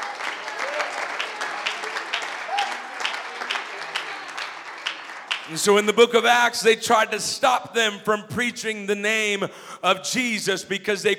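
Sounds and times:
audience clapping hands: 0.0s - 6.4s
speech: 5.5s - 11.1s.

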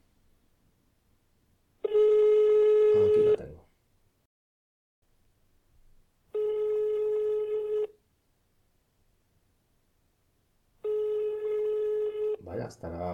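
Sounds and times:
telephone ringback tone while placing a call: 1.8s - 3.4s, 6.3s - 8.0s, 10.8s - 12.4s
speech: 12.7s - 13.1s.

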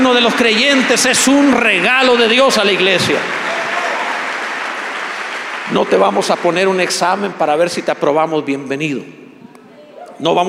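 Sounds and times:
audience applause: 0.0s - 7.2s
speech: 0.1s - 3.5s, 5.7s - 9.2s, 10.2s - 10.4s.

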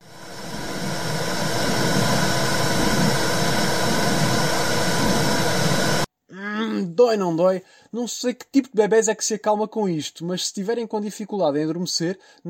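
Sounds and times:
womb sounds heard from inside uterus: 0.0s - 6.1s
speech: 7.0s - 12.4s.

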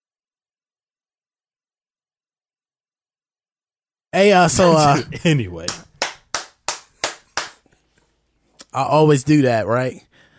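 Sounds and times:
speech: 4.2s - 5.9s, 8.7s - 10.1s
sharp hand claps: 5.6s - 7.7s.

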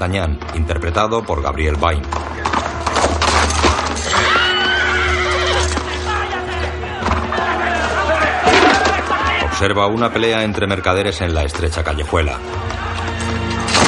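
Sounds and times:
speech: 0.0s - 2.3s, 9.6s - 12.9s
horse hooves: 1.8s - 13.8s
horse neighing: 4.0s - 5.8s.

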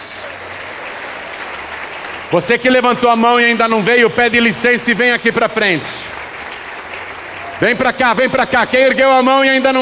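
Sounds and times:
audience applause: 0.0s - 9.8s
speech: 2.3s - 6.2s, 7.6s - 9.8s.

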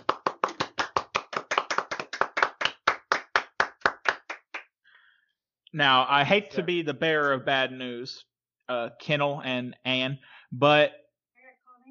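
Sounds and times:
applause: 0.0s - 4.8s
speech: 5.7s - 11.0s.

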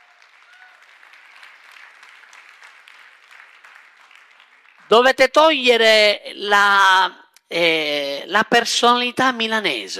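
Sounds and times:
audience applause: 0.0s - 4.9s
speech: 4.9s - 9.9s.

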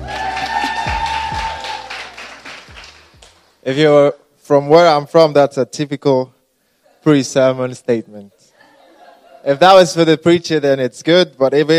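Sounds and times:
audience clapping: 0.0s - 3.6s
speech: 3.6s - 6.4s, 7.0s - 8.4s, 9.4s - 11.7s.

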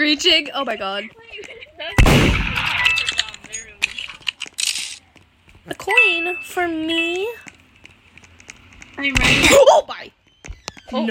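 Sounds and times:
speech: 0.0s - 2.2s, 5.6s - 7.5s, 9.0s - 10.2s
video game gunshot: 2.0s - 3.1s.

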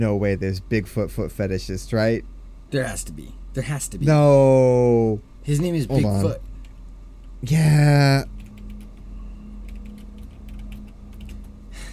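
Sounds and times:
speech: 0.0s - 6.5s, 7.4s - 8.4s
steady low hum: 0.0s - 11.9s
typing on a keyboard: 8.4s - 9.0s, 9.6s - 11.6s.

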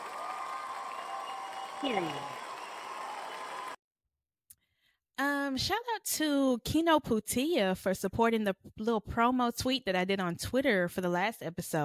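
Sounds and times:
crowd applause: 0.0s - 3.8s
swooping cheer: 0.0s - 3.8s
speech: 1.8s - 2.4s, 5.5s - 11.8s.

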